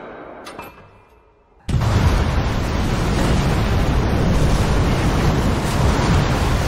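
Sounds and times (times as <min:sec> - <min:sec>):
atomic bomb explosion sound effect from Oppenheimer: 0:01.7 - 0:06.6.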